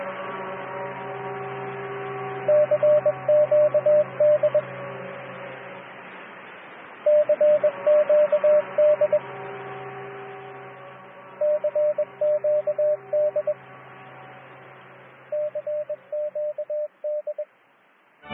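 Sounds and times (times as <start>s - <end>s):
low hum: 0.3s - 17.5s
beeping radio distress call in Morse-style tones: 2.5s - 4.6s, 7.1s - 9.2s, 11.4s - 13.6s, 15.3s - 17.5s.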